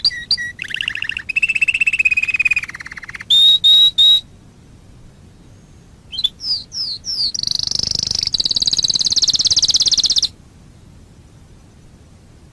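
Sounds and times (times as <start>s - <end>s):
Waterslager canary singing a high pulsed trill: 0.0s - 4.2s, 6.1s - 10.3s.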